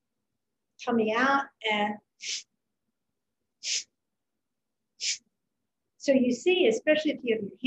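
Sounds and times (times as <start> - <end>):
speech: 0.8 - 2.5, 3.6 - 3.9, 5.0 - 5.2, 6.0 - 7.6
forceful Kapalabhati yoga exhales through the nose: 2.2 - 2.5, 3.6 - 3.9, 5.0 - 5.2.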